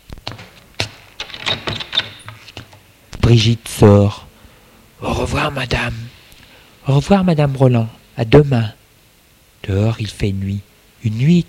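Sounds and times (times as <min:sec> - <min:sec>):
door opening: 0:00.2 - 0:02.8
speech: 0:03.3 - 0:04.2, 0:05.0 - 0:06.0, 0:06.9 - 0:08.8, 0:09.6 - 0:11.4.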